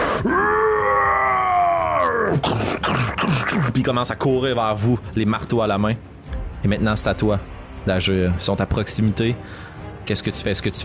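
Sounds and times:
creature's loud guttural cry: 0.0 - 3.8
speech: 3.8 - 10.8.

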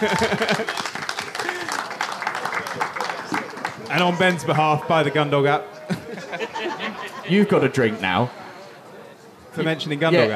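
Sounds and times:
speech: 0.0 - 0.8, 4.0 - 5.7, 7.3 - 8.4, 9.6 - 10.3
laughter: 0.0 - 4.5, 5.6 - 8.2
live audience applause: 0.0 - 5.2.

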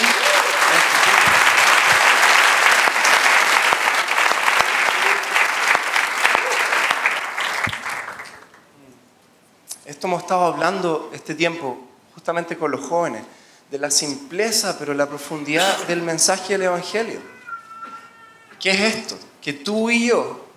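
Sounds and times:
audience applause: 0.0 - 8.6
speech: 10.1 - 17.4, 18.6 - 20.4.

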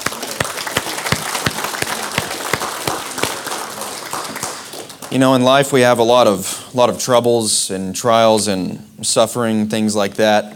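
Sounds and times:
audience hand clapping: 0.0 - 5.4
speech: 5.1 - 10.5.

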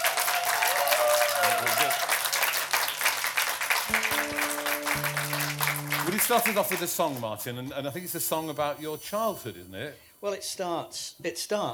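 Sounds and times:
audience applause welcoming a performer: 0.0 - 7.3
brief tonal notes: 3.9 - 6.9
speech: 6.2 - 11.7.

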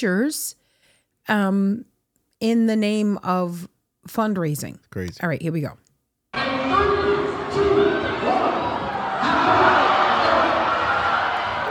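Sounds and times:
speech: 0.0 - 0.6, 1.3 - 6.6
crowd cheering on kids: 6.4 - 11.6.

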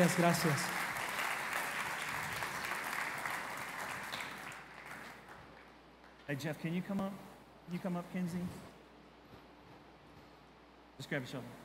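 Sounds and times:
speech: 0.0 - 0.9, 6.3 - 8.7, 11.0 - 11.6
audience applause: 0.0 - 5.8.

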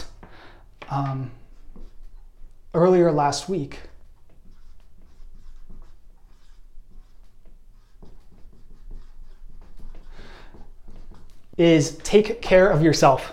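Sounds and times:
speech: 0.9 - 1.4, 2.7 - 3.9, 11.6 - 13.3
pen scratching as someone writes out notes: 1.4 - 2.3, 3.9 - 11.6.

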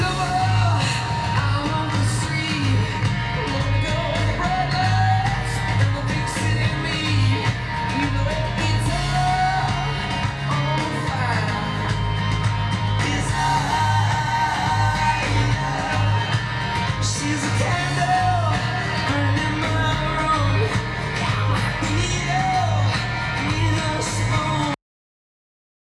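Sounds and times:
rock song recording: 0.0 - 24.8.

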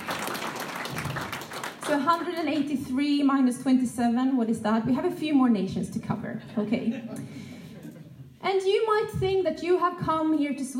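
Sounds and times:
church audience clapping in Sweden: 0.0 - 2.7
speech: 1.9 - 7.4, 8.4 - 10.7.

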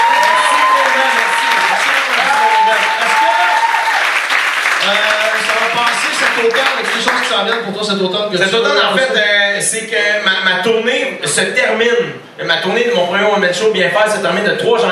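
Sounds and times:
crowd applauding: 0.0 - 7.7
speech: 7.0 - 14.9.

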